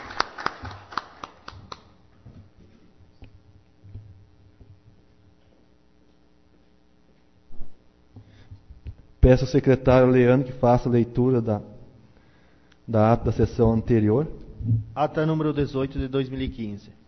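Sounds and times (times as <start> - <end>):
audience applause: 0.0 - 1.9
speech: 9.3 - 11.7, 12.9 - 17.0.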